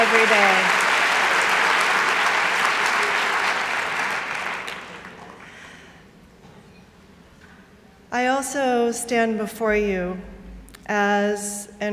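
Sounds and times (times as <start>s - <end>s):
audience applause: 0.0s - 5.8s
speech: 0.1s - 0.8s, 8.4s - 11.9s.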